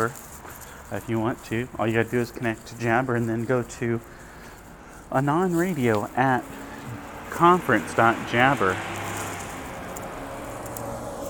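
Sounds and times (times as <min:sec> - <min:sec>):
speech: 0:00.0 - 0:00.3, 0:00.9 - 0:04.2, 0:05.1 - 0:06.6, 0:07.4 - 0:08.9
heavy truck driving by: 0:05.9 - 0:11.2.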